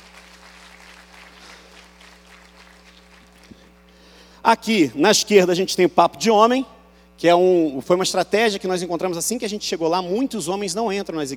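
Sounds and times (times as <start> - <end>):
church audience applause: 0.0 - 3.6
speech: 4.5 - 11.3.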